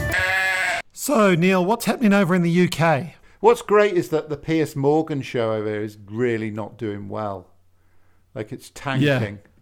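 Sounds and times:
goat bleating in the Confused Goat sound effect: 0:00.2 - 0:00.9
speech: 0:01.1 - 0:07.5, 0:08.3 - 0:09.6.

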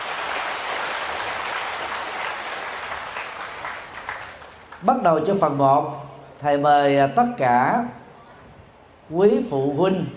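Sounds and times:
audience applause: 0:00.0 - 0:04.8
speech: 0:04.8 - 0:08.0, 0:09.1 - 0:10.1.

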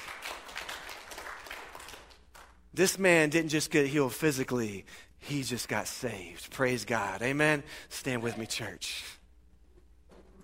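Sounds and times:
church congregation applauding: 0:00.0 - 0:02.6
speech: 0:02.8 - 0:09.2.

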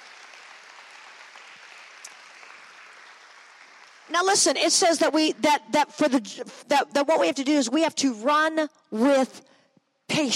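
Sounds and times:
audience clapping hands: 0:00.0 - 0:05.4
speech: 0:04.1 - 0:09.5, 0:10.1 - 0:10.3.

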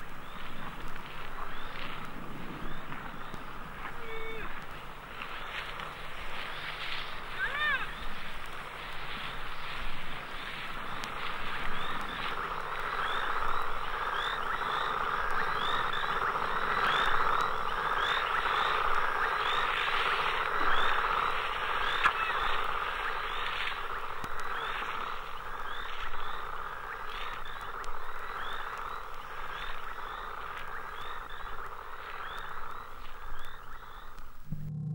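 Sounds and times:
frog chorus: 0:00.0 - 0:34.5.

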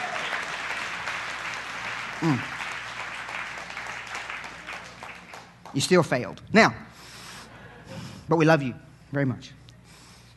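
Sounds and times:
audience applause: 0:00.0 - 0:05.9
speech: 0:02.2 - 0:02.6, 0:05.8 - 0:06.9, 0:08.3 - 0:09.6.

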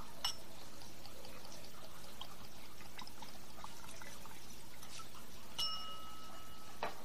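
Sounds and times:
scotch whisky pouring into nosing glass: 0:00.0 - 0:06.4
bright glassy clinks: 0:05.6 - 0:07.0.

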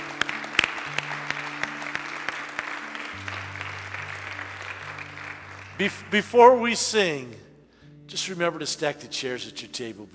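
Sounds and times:
audience clapping: 0:00.0 - 0:07.0
speech: 0:05.8 - 0:07.4, 0:08.1 - 0:10.1.

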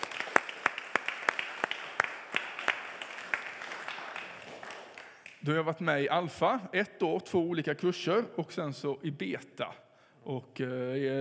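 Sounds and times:
audience applause: 0:00.0 - 0:05.4
speech: 0:05.4 - 0:11.1.

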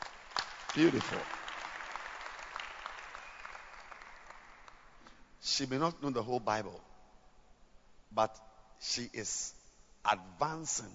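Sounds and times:
audience clapping hands: 0:00.0 - 0:05.0
speech: 0:00.7 - 0:01.4, 0:05.6 - 0:06.9, 0:08.1 - 0:10.9.

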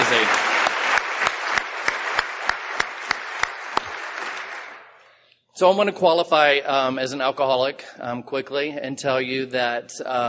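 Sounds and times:
audience applause: 0:00.0 - 0:05.0
speech: 0:05.6 - 0:10.2.

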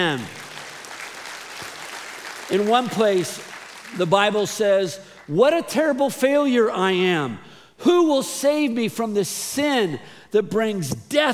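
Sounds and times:
speech: 0:00.0 - 0:00.4, 0:02.5 - 0:11.3
audience applauding: 0:00.0 - 0:04.4.

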